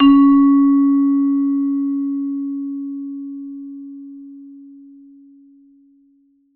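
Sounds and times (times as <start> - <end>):
vibraphone note C#3: 0.0 - 2.2.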